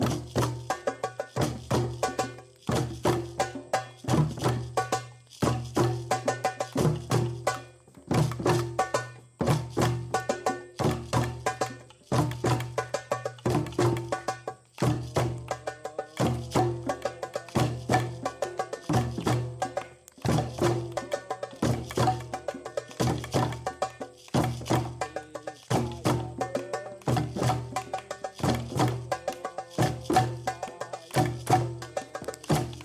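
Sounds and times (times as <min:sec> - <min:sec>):
house drumming session in Africa: 0:00.0 - 0:32.8.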